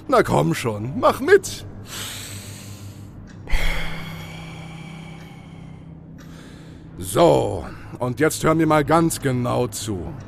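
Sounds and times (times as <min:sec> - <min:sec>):
speech: 0:00.1 - 0:02.2, 0:07.0 - 0:10.2
deep breath in and out: 0:01.9 - 0:07.0.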